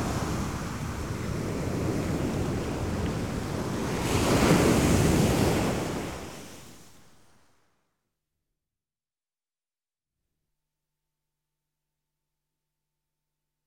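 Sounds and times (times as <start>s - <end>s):
waves washing on a beach: 0.0s - 7.3s.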